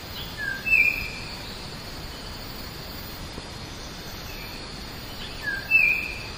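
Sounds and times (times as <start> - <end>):
Bornean oriole giving a brief whistled call: 0.2 - 1.3, 5.3 - 6.3.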